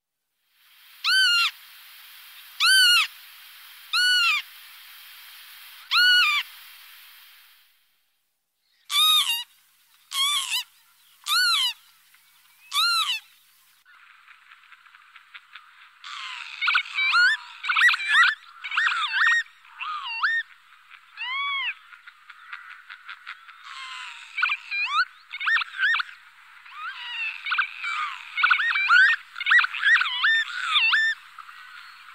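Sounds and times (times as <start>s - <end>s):
lapwings calling in flight: 1.0s - 1.6s, 2.3s - 3.2s, 3.9s - 4.5s, 5.4s - 7.1s, 8.9s - 9.5s, 10.1s - 11.8s, 12.7s - 13.3s, 14.0s - 32.1s.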